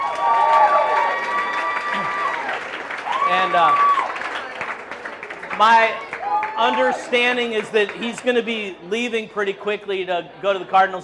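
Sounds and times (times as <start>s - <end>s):
audience applause: 0.0s - 8.3s
speech: 3.3s - 3.9s, 5.6s - 11.0s.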